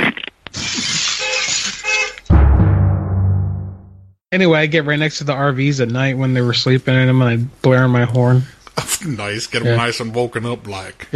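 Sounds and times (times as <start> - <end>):
car window glass shattering: 0.6 - 2.3
heavy low thump: 2.3 - 4.1
speech: 4.3 - 11.1.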